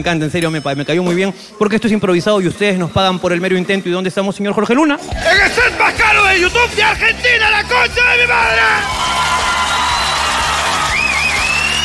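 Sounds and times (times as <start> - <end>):
speech: 0.0 - 9.3
theater audience applause: 8.6 - 11.8.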